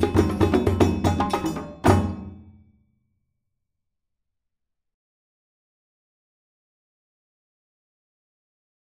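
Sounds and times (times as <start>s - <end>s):
djembe drumming: 0.0s - 2.6s.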